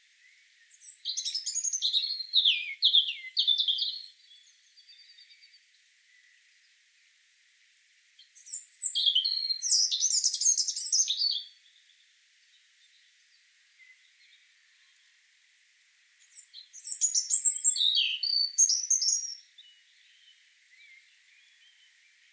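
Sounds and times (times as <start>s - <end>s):
European robin Erithacus rubecula song: 0.0s - 6.8s, 8.2s - 15.2s, 16.2s - 22.3s.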